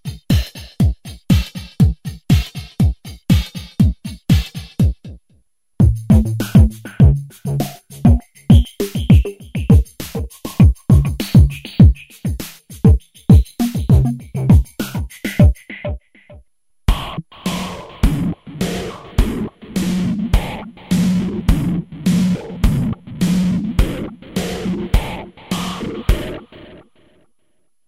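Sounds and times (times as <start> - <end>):
processed beats: 0.0 - 5.2, 5.8 - 26.8.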